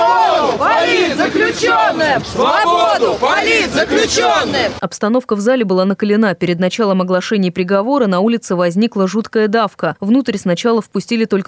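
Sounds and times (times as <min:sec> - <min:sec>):
crowd shouting outside the courthouse: 0:00.0 - 0:04.8
speech: 0:00.8 - 0:11.4.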